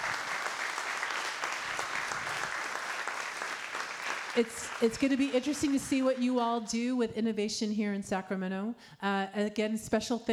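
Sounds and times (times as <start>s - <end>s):
audience applause: 0.0s - 6.0s
speech: 4.4s - 10.3s.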